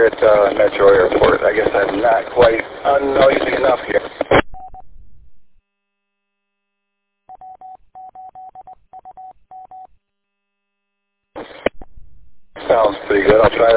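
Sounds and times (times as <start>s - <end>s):
speech: 0.0s - 4.4s, 13.1s - 13.7s
electronic touch-tone beeps as a phone number is dialed: 7.3s - 9.9s.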